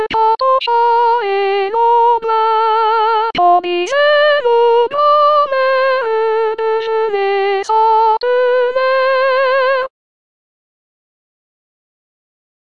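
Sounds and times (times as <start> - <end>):
soprano singing: 0.0 - 9.9.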